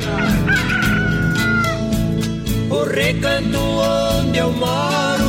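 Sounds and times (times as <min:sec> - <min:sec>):
rooster crowing: 0:00.2 - 0:02.0
speech: 0:02.8 - 0:05.1.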